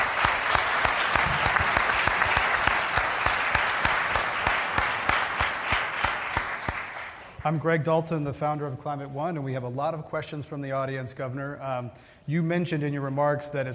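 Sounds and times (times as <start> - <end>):
audience applause at a Climate One forum: 0.0 - 7.4
speech: 7.4 - 13.7.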